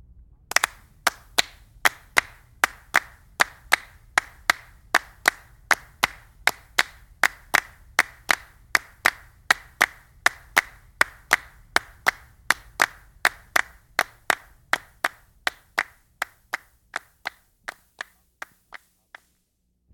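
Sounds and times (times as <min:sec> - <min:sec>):
palmas, rhythmic flamenco handclapping: 0:00.5 - 0:19.3.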